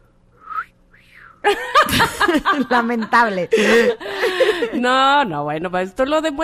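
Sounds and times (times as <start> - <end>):
person whistling: 0.4 - 1.4
speech: 1.4 - 6.4
laughter: 1.5 - 5.0.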